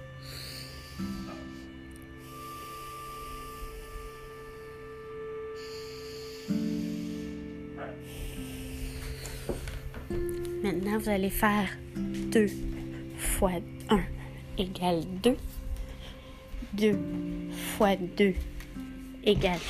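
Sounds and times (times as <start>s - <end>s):
slow deep breaths: 0.0s - 10.5s, 12.6s - 13.4s, 14.1s - 14.6s, 15.5s - 17.8s
faint steady hum: 0.0s - 19.3s
speech: 10.7s - 11.8s, 12.4s - 12.7s, 13.4s - 15.6s, 16.8s - 18.5s, 19.2s - 19.6s.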